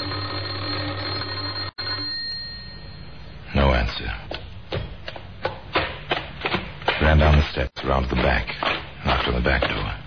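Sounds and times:
doorbell ringing: 0:00.0 - 0:03.2
speech: 0:03.8 - 0:04.4, 0:07.0 - 0:09.8.

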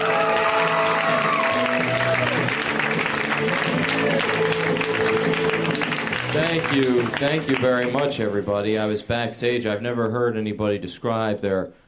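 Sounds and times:
comedy show audience clapping for a comedian: 0:00.0 - 0:08.3
speech: 0:06.6 - 0:11.8.

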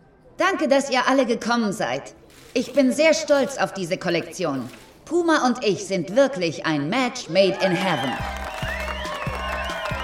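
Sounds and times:
speech: 0:00.4 - 0:08.4
crowd cheering and applauding: 0:07.5 - 0:10.0.

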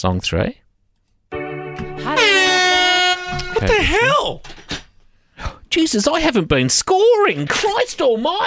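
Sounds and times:
speech: 0:00.0 - 0:00.6, 0:03.6 - 0:04.6, 0:05.4 - 0:08.4
quiz buzzer: 0:01.8 - 0:04.1.

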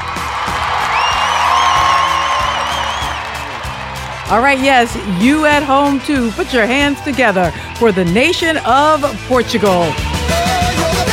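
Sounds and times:
canned crowd-cheering sound effect: 0:00.0 - 0:11.1
whoops and high whistles: 0:00.9 - 0:03.4
speech: 0:04.3 - 0:10.1.

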